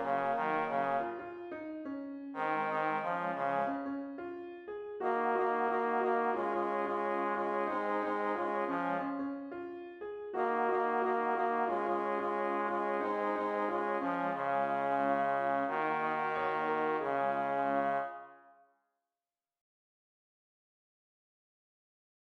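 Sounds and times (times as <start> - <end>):
MIDI music: 0.0 - 17.6.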